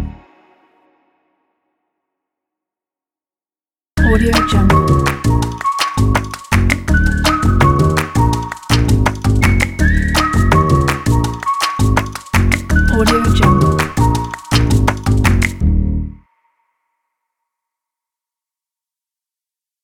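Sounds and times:
upbeat fashion jazz: 4.0 - 15.6.

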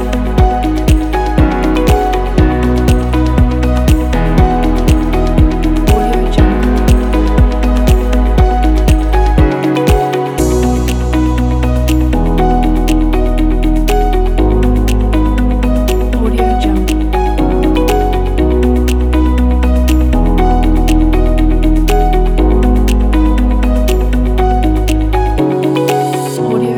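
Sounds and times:
corporate motivational dynamic music: 0.0 - 26.6.

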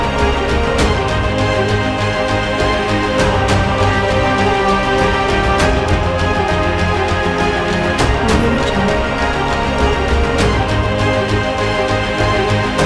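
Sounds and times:
inspirational trailer music: 0.0 - 12.8.

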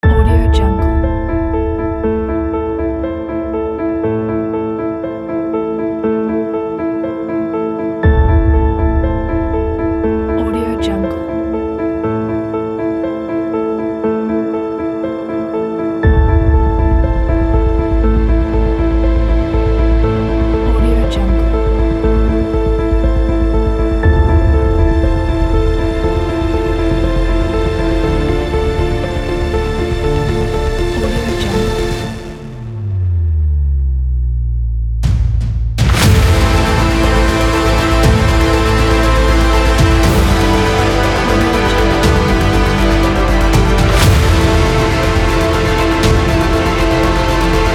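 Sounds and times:
epic music: 0.0 - 47.7.

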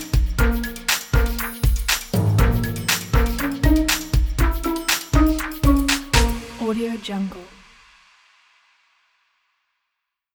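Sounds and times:
light sneaky music: 0.0 - 7.5.

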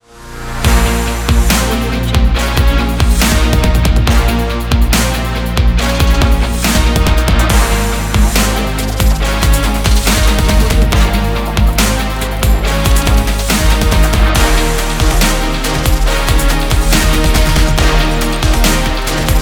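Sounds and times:
action sport dubstep ident music: 0.2 - 19.3.

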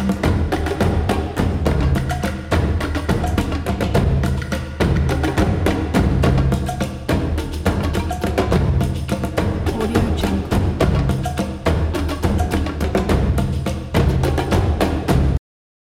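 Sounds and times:
African drums: 0.0 - 15.4.

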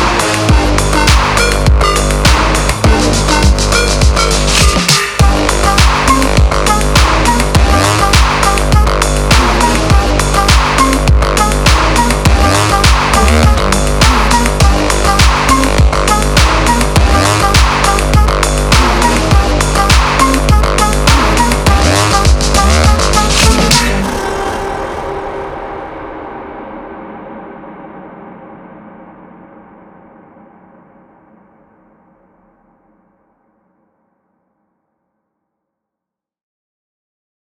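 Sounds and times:
intense electro cyberpunk music: 0.0 - 27.1.

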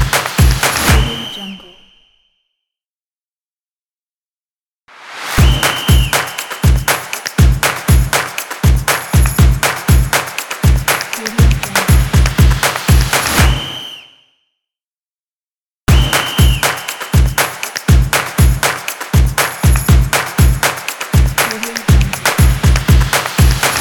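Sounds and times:
drum: 0.0 - 1.2, 5.4 - 13.6, 15.9 - 23.8.

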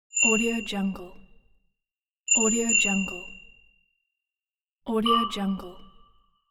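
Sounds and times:
bells: 0.2 - 0.7, 2.3 - 3.3.

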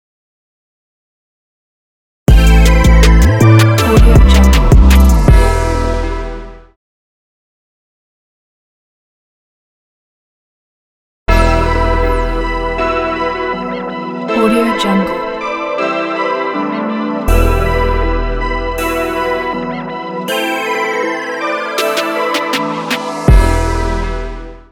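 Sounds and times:
bright hip-hop logo jingle: 2.3 - 6.7, 11.3 - 14.4, 15.4 - 24.7.

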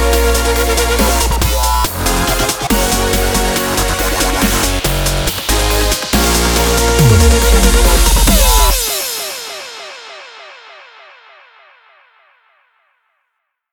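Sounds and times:
aggressive sports dubstep music: 0.0 - 9.8.

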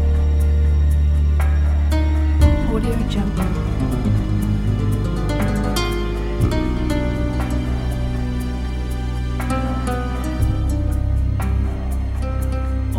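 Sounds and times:
slow classical guitar groove: 0.0 - 12.9.

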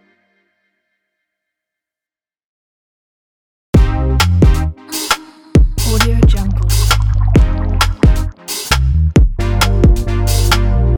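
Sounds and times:
modern advertising music: 3.8 - 10.9.

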